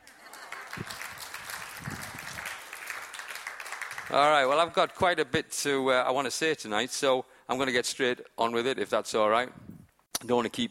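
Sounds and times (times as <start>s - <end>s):
audience clapping: 0.0s - 4.8s
speech: 4.1s - 9.6s, 10.2s - 10.6s.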